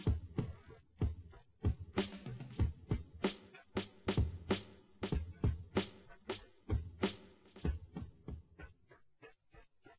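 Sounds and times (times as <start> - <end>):
drums: 0.0 - 8.8.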